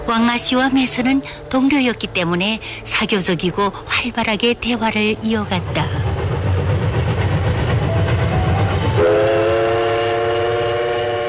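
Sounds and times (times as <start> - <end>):
train running slowly on rails: 0.0 - 11.2
speech: 0.1 - 6.1
train horn blast: 9.0 - 11.2.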